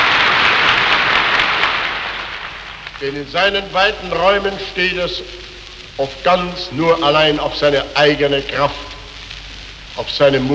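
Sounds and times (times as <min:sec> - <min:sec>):
crowd applause in the Sportpalast during a speech: 0:00.0 - 0:02.9
speech: 0:03.0 - 0:08.9, 0:10.0 - 0:10.5.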